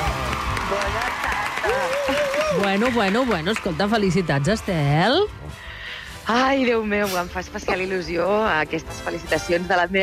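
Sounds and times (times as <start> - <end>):
audience applause: 0.0 - 4.9
speech: 2.6 - 5.6, 6.3 - 10.0.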